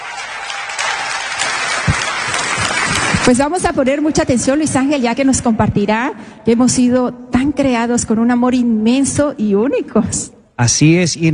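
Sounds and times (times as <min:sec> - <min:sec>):
audience applause: 0:00.0 - 0:03.6
speech: 0:03.2 - 0:11.3.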